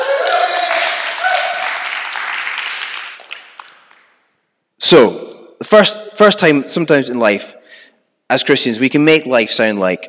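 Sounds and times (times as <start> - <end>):
audience cheering and clapping: 0.0 - 4.2
speech: 4.9 - 7.6, 8.3 - 10.0.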